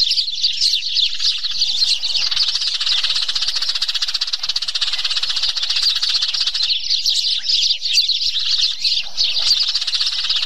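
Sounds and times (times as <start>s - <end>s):
sparrows chirping in a dense chorus: 0.0s - 10.4s.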